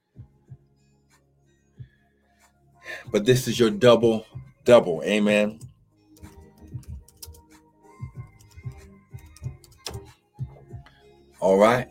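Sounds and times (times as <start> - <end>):
speech: 3.0 - 5.7, 11.6 - 11.8
computer keyboard keys clicking: 6.2 - 7.5, 8.4 - 10.1.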